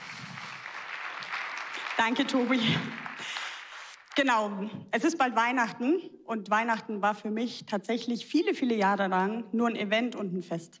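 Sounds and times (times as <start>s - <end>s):
audience applause: 0.0s - 4.2s
speech: 2.0s - 3.1s, 4.2s - 10.7s.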